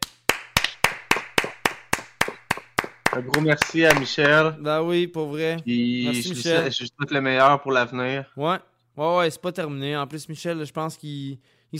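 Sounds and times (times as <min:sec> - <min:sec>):
round of applause: 0:00.0 - 0:04.3
speech: 0:03.2 - 0:11.7.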